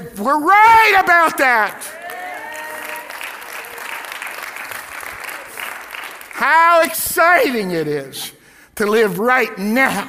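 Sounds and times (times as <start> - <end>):
speech: 0.1 - 2.0, 6.4 - 10.0
high-pitched cheer: 1.9 - 6.0
audience applause: 1.9 - 6.4.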